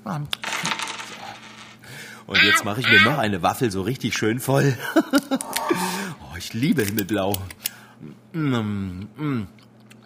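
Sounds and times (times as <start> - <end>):
speech: 0.1 - 0.9, 2.3 - 9.6
coins set down on a hard counter beside the cash register: 0.4 - 1.8
laughter: 4.7 - 6.0.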